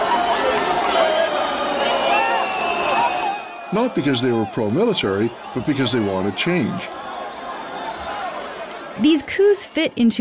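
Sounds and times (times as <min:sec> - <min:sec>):
shouts and calls: 0:00.0 - 0:09.7
large crowd celebrating in the streets: 0:00.0 - 0:09.9
speech: 0:03.7 - 0:07.0, 0:09.0 - 0:10.1
laughter: 0:03.7 - 0:09.6.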